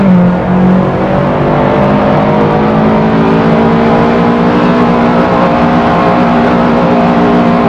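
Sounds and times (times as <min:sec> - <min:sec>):
cars: 0:00.0 - 0:07.6.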